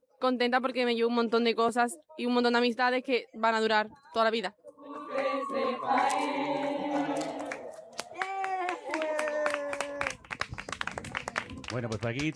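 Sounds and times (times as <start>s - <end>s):
speech: 0.2s - 4.6s, 5.4s - 6.7s, 11.7s - 12.3s
cheering and whooping voices: 4.8s - 10.2s
group clapping: 4.8s - 12.3s.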